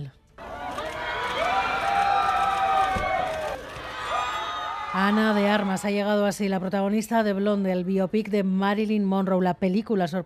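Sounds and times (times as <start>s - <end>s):
fans applauding an arrival: 0.4s - 5.9s
speech: 5.0s - 10.2s.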